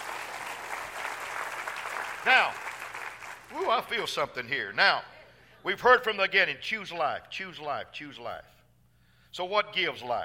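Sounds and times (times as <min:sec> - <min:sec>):
audience clapping hands: 0:00.0 - 0:04.1
speech: 0:02.2 - 0:02.6, 0:03.5 - 0:08.6, 0:09.3 - 0:10.2.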